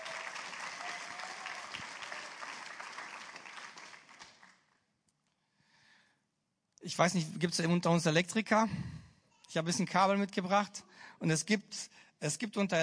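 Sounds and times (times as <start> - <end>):
audience applause: 0.0 - 4.7
speech: 6.9 - 12.8.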